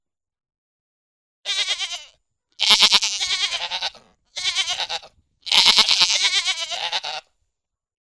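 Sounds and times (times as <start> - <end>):
goat giving wavering nasal bleats: 1.5 - 7.3.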